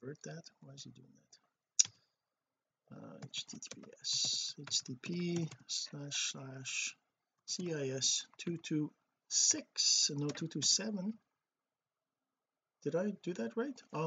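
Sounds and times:
speech: 0.1s - 1.4s, 2.9s - 11.3s, 12.8s - 14.0s
typing on a computer keyboard: 3.2s - 5.8s, 10.0s - 10.8s.

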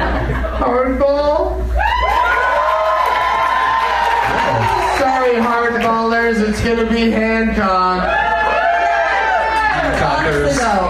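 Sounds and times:
laughter: 0.0s - 0.9s
speech: 0.3s - 1.3s, 6.4s - 8.1s
audience cheering in a vote: 1.8s - 5.7s, 8.0s - 10.8s.

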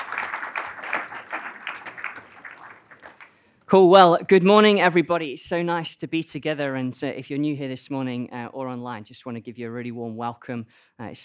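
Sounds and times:
audience applause: 0.0s - 3.4s
speech: 3.7s - 11.2s.

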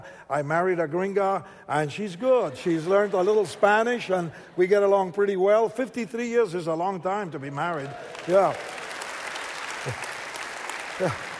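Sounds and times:
speech: 0.0s - 8.8s, 9.8s - 10.1s, 11.0s - 11.3s
audience clapping: 7.6s - 11.3s.

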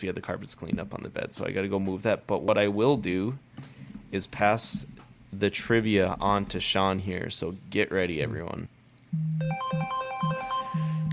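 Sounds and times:
speech: 0.0s - 10.4s
electronic alarm jingle announcing trivia: 9.2s - 11.1s.

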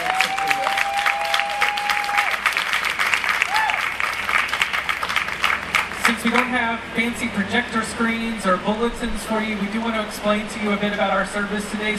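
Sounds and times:
audience applause: 0.0s - 6.5s
speech: 6.1s - 11.9s.

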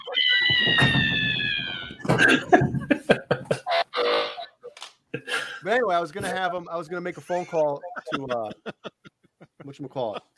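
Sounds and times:
high-pitched tonal cry: 0.0s - 2.1s, 3.7s - 4.7s
laughter: 1.9s - 4.3s, 6.2s - 10.3s
speech: 2.2s - 2.9s, 5.7s - 8.8s, 9.7s - 10.3s.

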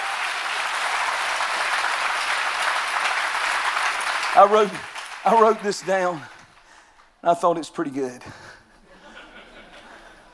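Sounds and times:
audience applause: 0.0s - 6.8s
speech: 4.4s - 6.3s, 7.2s - 8.4s
laughter: 8.8s - 10.3s.

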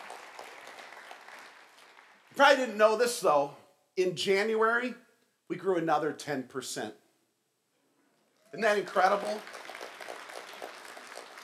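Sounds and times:
audience clapping: 0.0s - 2.6s, 8.4s - 11.4s
speech: 2.4s - 7.0s, 8.5s - 9.6s.

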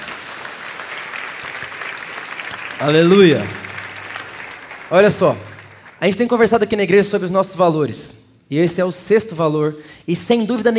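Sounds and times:
audience applause: 0.0s - 6.4s
speech: 2.8s - 3.6s, 4.9s - 10.7s.

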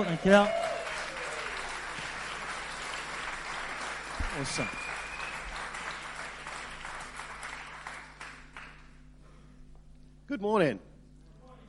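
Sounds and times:
speech: 0.0s - 0.6s, 4.4s - 4.9s, 10.3s - 10.9s
crowd applauding: 0.0s - 9.0s.

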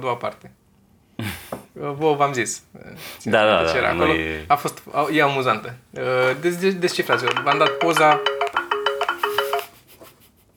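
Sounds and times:
speech: 0.0s - 0.6s, 1.8s - 8.4s
laughter: 3.0s - 4.6s, 6.1s - 8.0s
phone notification sounds: 6.9s - 9.8s.

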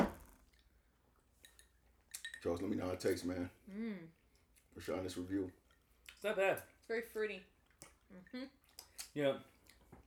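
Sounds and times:
glasses clinking in a toast: 1.4s - 2.6s
speech: 2.4s - 5.6s, 6.2s - 7.5s, 8.1s - 8.6s, 9.2s - 9.5s.

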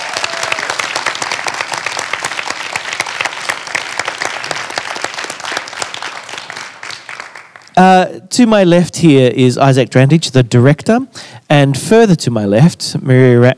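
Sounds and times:
audience round of applause: 0.0s - 7.8s
speech: 7.8s - 13.5s.

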